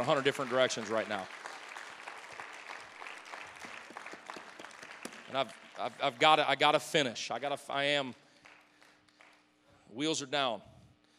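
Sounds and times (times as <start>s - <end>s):
speech: 0.0s - 1.4s, 5.3s - 8.2s, 9.9s - 10.7s
audience clapping hands: 0.0s - 6.8s, 8.2s - 9.5s.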